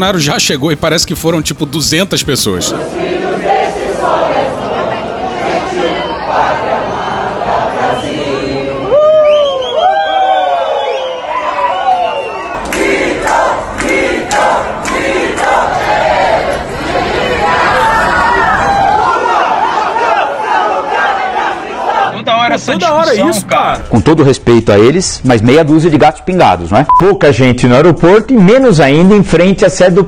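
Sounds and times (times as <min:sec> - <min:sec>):
speech: 0:00.0 - 0:03.3, 0:22.6 - 0:30.0
crowd of supporters chanting and shouting in an airport hall: 0:00.0 - 0:24.0
rising whoops: 0:08.9 - 0:12.6.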